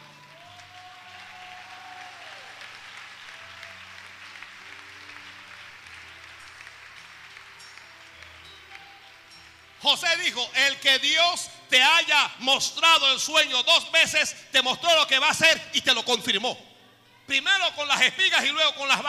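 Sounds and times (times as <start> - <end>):
applause: 0.0 - 10.8
speech: 9.8 - 16.7, 17.3 - 19.0.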